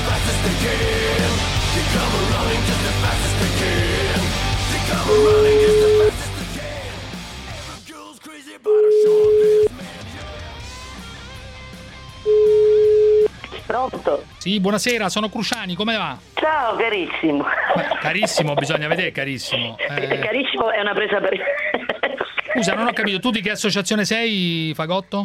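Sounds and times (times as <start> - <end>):
speech: 0.1 - 5.9, 13.7 - 21.7, 22.5 - 25.2
phone ringback tone as a call is placed: 5.1 - 6.1, 8.7 - 9.7, 12.3 - 13.3
laughter: 17.3 - 23.4.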